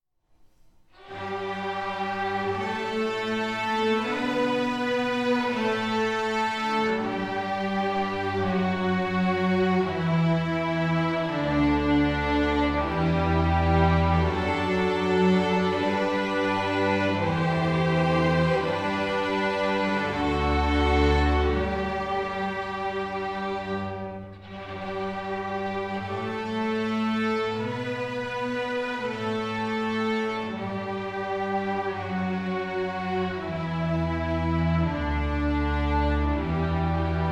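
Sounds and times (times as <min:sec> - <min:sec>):
chorale: 0:01.0 - 0:37.3.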